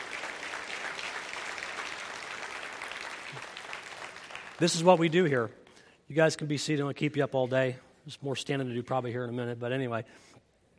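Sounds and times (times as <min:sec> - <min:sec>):
audience clapping for each other: 0:00.0 - 0:05.4
speech: 0:04.6 - 0:10.4.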